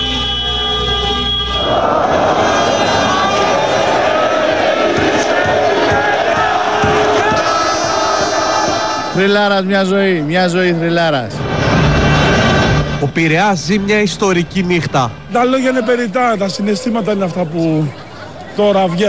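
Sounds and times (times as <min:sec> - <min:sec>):
sustained horn-like blare: 0:00.0 - 0:04.6, 0:07.3 - 0:09.2
crowd shouting and cheering in a theatre: 0:00.0 - 0:19.0
speech: 0:09.2 - 0:11.4, 0:13.0 - 0:18.0, 0:18.6 - 0:19.0
laughter: 0:16.8 - 0:19.0.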